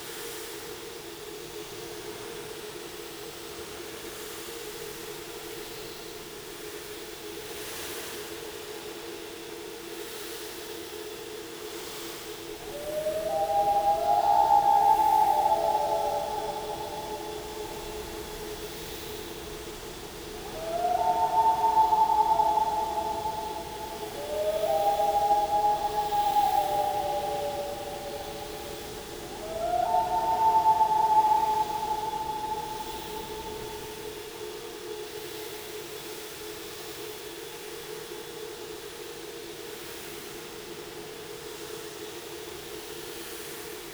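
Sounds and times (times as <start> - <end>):
loon wailing: 12.7 - 18.6, 20.2 - 34.0.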